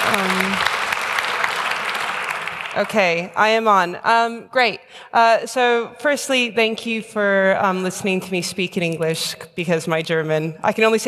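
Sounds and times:
audience applauding a speaker: 0:00.0 - 0:03.2
speech: 0:02.8 - 0:11.0.

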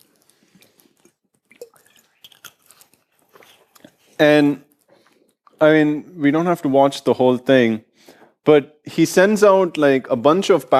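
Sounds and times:
person drinking water: 0:00.0 - 0:05.6
speech: 0:04.2 - 0:04.6, 0:05.6 - 0:10.7.

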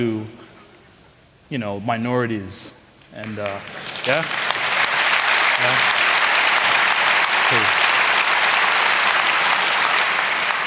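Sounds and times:
speech: 0:01.5 - 0:04.4
audience applause: 0:03.2 - 0:10.6.

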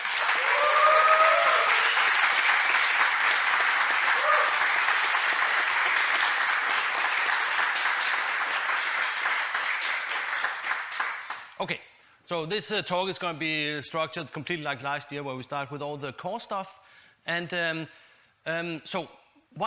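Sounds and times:
loud audience applause: 0:00.0 - 0:11.6
speech: 0:11.6 - 0:19.6.

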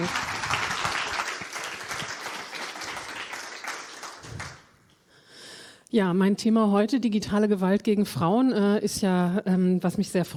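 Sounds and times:
audience applause for a speaker at a talk: 0:00.0 - 0:04.8
speech: 0:05.9 - 0:10.3.

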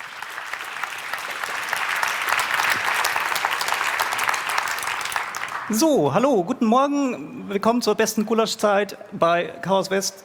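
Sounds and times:
audience clapping: 0:00.0 - 0:05.8
speech: 0:05.7 - 0:10.2.

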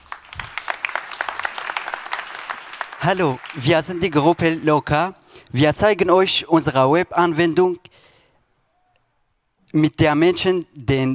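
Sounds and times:
audience applause for a youth group's presentation: 0:00.0 - 0:04.4
speech: 0:03.0 - 0:08.0, 0:09.7 - 0:11.1.

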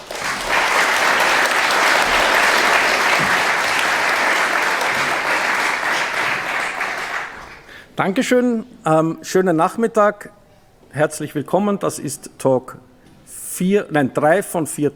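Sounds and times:
audience applause: 0:00.0 - 0:07.7
speech: 0:08.0 - 0:12.9, 0:13.6 - 0:14.9.

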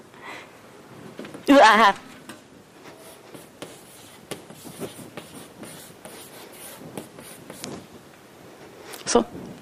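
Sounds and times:
speech: 0:01.5 - 0:02.0, 0:09.1 - 0:09.4
chalk writing on a board with a very short stick of chalk: 0:02.9 - 0:07.8.

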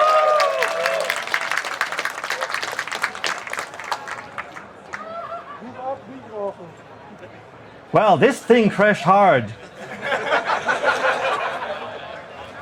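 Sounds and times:
whoops: 0:00.0 - 0:01.5
crowd clapping: 0:00.0 - 0:05.1
speech: 0:07.9 - 0:09.6
laughter: 0:09.6 - 0:12.2.

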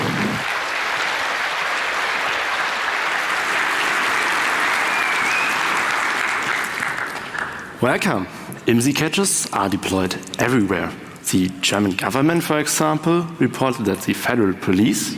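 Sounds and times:
large audience applause: 0:00.0 - 0:07.9
speech: 0:07.8 - 0:15.1.

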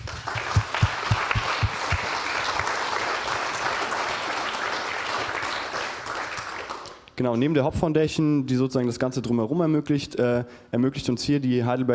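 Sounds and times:
audience applause: 0:00.0 - 0:07.0
speech: 0:07.2 - 0:11.9.

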